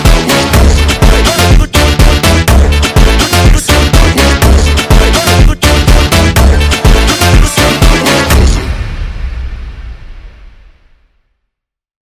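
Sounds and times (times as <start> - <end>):
sped up funk music: 0.0 - 8.8.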